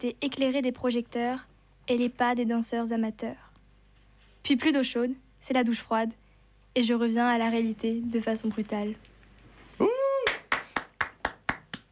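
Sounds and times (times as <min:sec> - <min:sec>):
speech: 0:00.0 - 0:03.4, 0:04.4 - 0:06.2, 0:06.8 - 0:09.1
light applause: 0:09.8 - 0:11.9.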